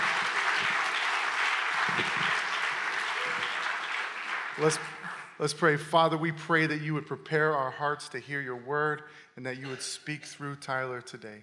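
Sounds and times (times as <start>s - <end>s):
crowd clapping: 0.0s - 5.4s
speech: 1.9s - 2.3s, 4.6s - 11.4s.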